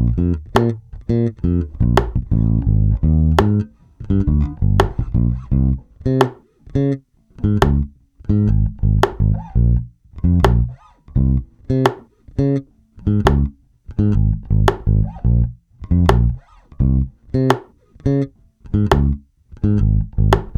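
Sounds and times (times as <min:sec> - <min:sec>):
metronome: 0:00.0 - 0:05.5, 0:06.1 - 0:09.7, 0:11.7 - 0:15.2, 0:18.8 - 0:19.2, 0:20.2 - 0:20.5
bass: 0:00.0 - 0:20.5.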